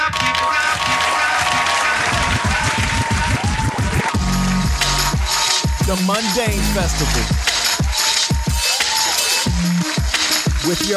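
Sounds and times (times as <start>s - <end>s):
audience applause: 0.2s - 10.9s
speech: 5.9s - 7.5s, 10.6s - 10.9s.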